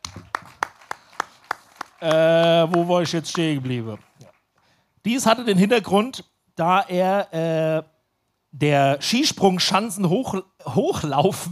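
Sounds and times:
slow applause for someone who told a story: 0.0s - 4.8s
speech: 2.0s - 4.1s, 5.0s - 7.9s, 8.5s - 11.5s.

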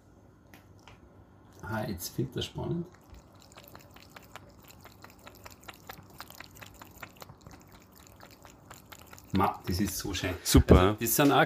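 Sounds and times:
speech: 1.6s - 3.0s, 9.4s - 11.4s
cat splashing water at a small water fountain: 1.6s - 10.2s.

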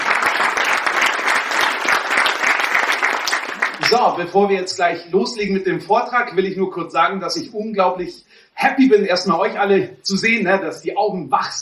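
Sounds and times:
audience applause: 0.0s - 4.0s
speech: 3.9s - 11.6s.

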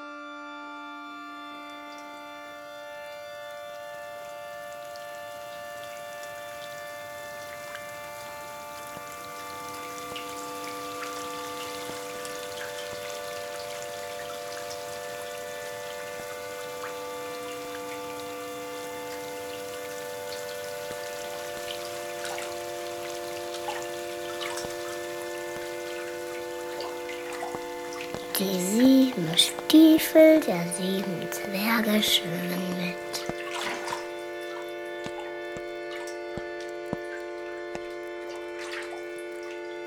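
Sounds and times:
water dripping: 1.6s - 39.8s
speech: 28.4s - 33.0s.

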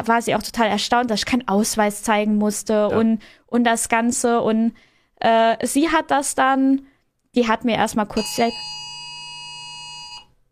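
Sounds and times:
speech: 0.0s - 8.8s
phone emergency alert alarm: 8.2s - 10.3s.

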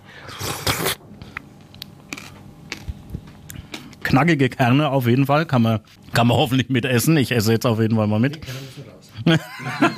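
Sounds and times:
slurping fruit pulp off a spoon: 0.2s - 1.0s
speech: 4.1s - 9.9s
laughter: 9.2s - 9.9s.

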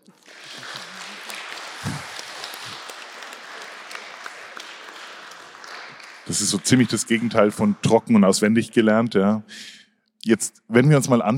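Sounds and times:
crowd applauding: 0.0s - 8.5s
speech: 6.3s - 11.3s.

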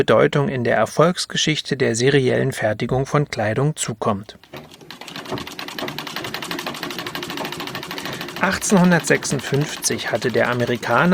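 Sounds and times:
speech: 0.0s - 4.7s, 5.3s - 5.6s, 8.4s - 11.1s
sewing machine running at high speed: 4.4s - 11.1s.

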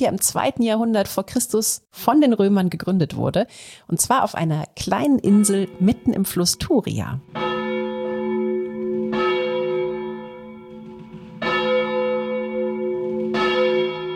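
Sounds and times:
speech: 0.0s - 7.5s
cathedral bells ringing: 5.3s - 14.1s.

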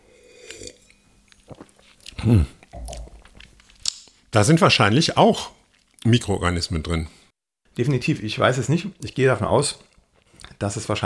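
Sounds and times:
person sipping juice: 0.0s - 3.9s
gulping slurp: 1.4s - 3.4s
speech: 2.2s - 2.6s, 4.4s - 7.2s, 7.8s - 9.9s, 10.6s - 11.0s.

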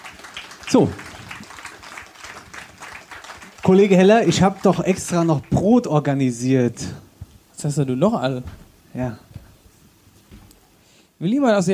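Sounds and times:
audience applauding: 0.0s - 6.2s
speech: 0.7s - 1.1s, 3.7s - 7.0s, 7.6s - 9.2s, 11.2s - 11.7s.

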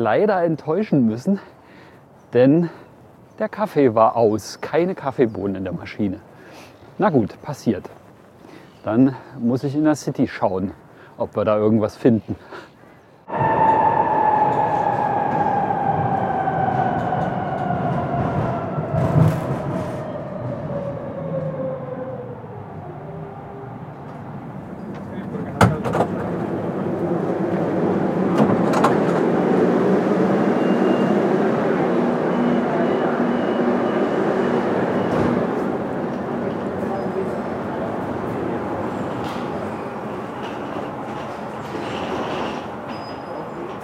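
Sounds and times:
speech: 0.0s - 1.6s, 2.3s - 2.8s, 3.4s - 6.3s, 7.0s - 8.0s, 8.8s - 12.7s
subway train ride: 13.2s - 43.8s.

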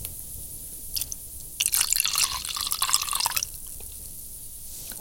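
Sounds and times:
vodka being poured onto baby porridge: 1.0s - 3.6s.

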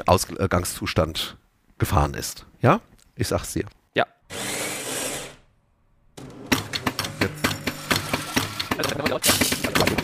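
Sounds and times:
speech: 0.0s - 4.4s
espresso machine pump starting: 6.2s - 9.9s.

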